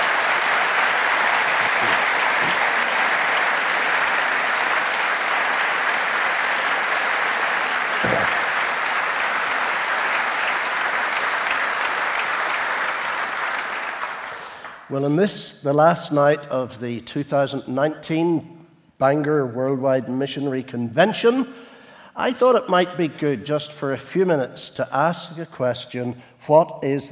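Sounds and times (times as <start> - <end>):
audience applause: 0.0 - 14.9
speech: 14.9 - 27.1.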